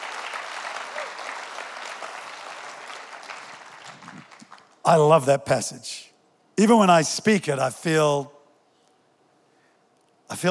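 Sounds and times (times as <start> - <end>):
audience applause: 0.0 - 4.8
speech: 4.9 - 8.4.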